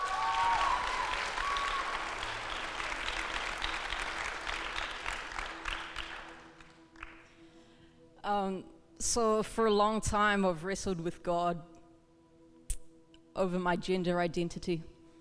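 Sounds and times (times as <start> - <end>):
audience applause: 0.0 - 7.2
speech: 8.3 - 11.7, 13.4 - 14.9.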